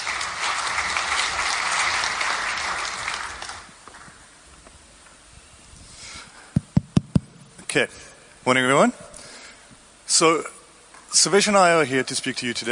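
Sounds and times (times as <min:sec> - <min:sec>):
audience applause: 0:00.0 - 0:04.2
speech: 0:07.8 - 0:09.1, 0:10.1 - 0:12.6.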